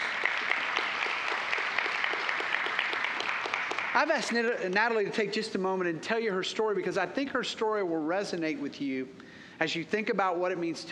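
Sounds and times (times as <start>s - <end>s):
audience applause at a church gathering: 0.0s - 4.5s
speech: 4.0s - 10.9s.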